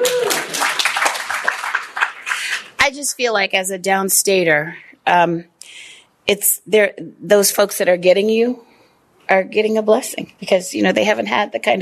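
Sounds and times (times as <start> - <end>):
audience applause: 0.0 - 2.8
speech: 2.9 - 8.7, 9.3 - 11.8.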